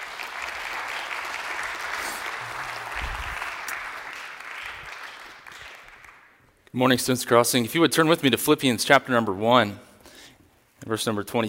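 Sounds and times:
audience at a church student gathering applauding a speaker: 0.0 - 6.4
speech: 6.8 - 9.9, 10.9 - 11.4.

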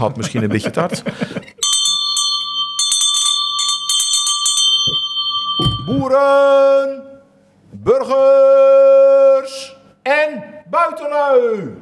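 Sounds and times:
speech: 0.0 - 1.5, 6.0 - 7.1, 7.8 - 9.5, 10.1 - 11.7
hand bell ringing: 1.6 - 6.2.

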